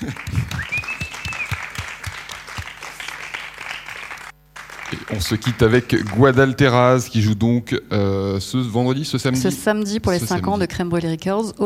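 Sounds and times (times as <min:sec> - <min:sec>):
audience applause: 0:00.0 - 0:06.5
speech: 0:05.1 - 0:11.6.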